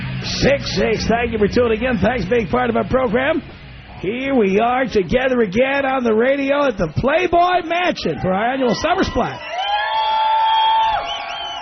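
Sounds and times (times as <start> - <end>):
speech: 0.4 - 9.5
party crowd of contest-winning radio listeners cheering at Playboy Mansion pool party: 8.1 - 11.6
long held high whoop sliding downward: 9.4 - 11.6.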